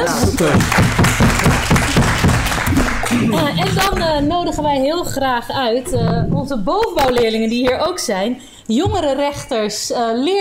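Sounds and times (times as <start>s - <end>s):
speech: 0.0s - 1.0s, 3.2s - 10.3s
audience applause: 0.0s - 3.9s.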